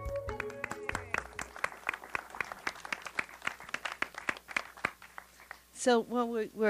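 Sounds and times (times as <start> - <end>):
audience applause: 0.2 - 5.6
speech: 5.8 - 6.6.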